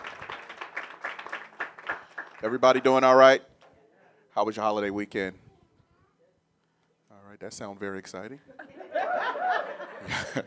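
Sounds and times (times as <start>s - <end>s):
audience clapping hands: 0.0s - 3.0s
speech: 2.4s - 3.5s, 4.4s - 5.4s, 7.3s - 10.4s
laughter: 8.5s - 10.4s.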